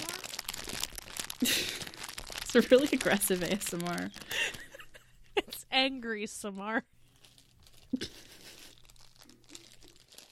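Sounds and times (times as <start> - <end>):
candy package tearing as it is opened: 0.0 - 4.8, 7.2 - 10.3
speech: 2.5 - 4.6, 5.7 - 7.0.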